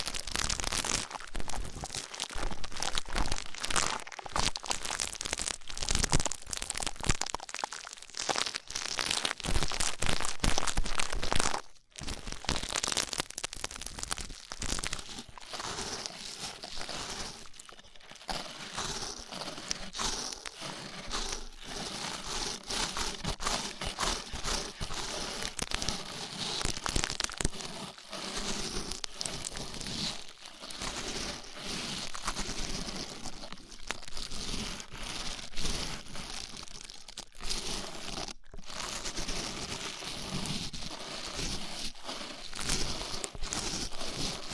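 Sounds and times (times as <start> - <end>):
rough ear cleaning scratching and crinkling: 0.0 - 11.6, 12.2 - 44.5.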